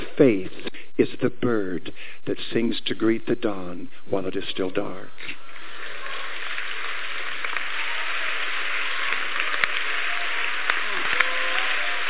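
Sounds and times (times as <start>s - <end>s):
speech: 0.2s - 5.4s
audience clapping hands: 5.4s - 12.0s.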